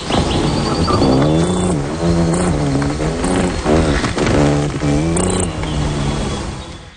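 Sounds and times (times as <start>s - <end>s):
voice imitating hummingbird wing buzz during courtship display: 0.9s - 6.6s.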